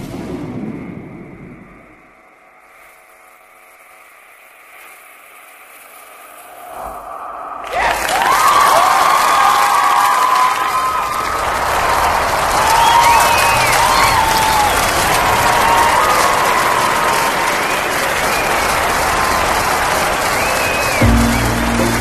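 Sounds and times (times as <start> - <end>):
audience applause at a live stage show: 7.6 - 21.9.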